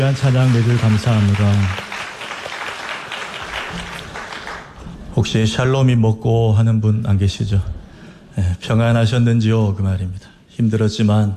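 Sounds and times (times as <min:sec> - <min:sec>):
speech: 0:00.0 - 0:01.8, 0:05.2 - 0:07.8, 0:08.4 - 0:11.3
audience applause: 0:00.0 - 0:04.8.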